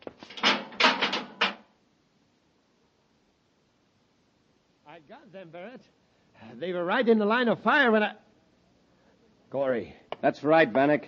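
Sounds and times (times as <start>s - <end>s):
door rattle: 0.3s - 1.7s
speech: 5.0s - 8.3s, 9.5s - 11.0s.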